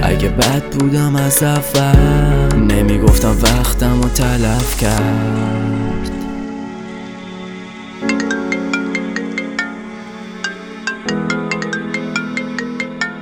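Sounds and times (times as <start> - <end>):
speech: 0.2 - 5.9
melodic phone ringtone: 8.0 - 13.1.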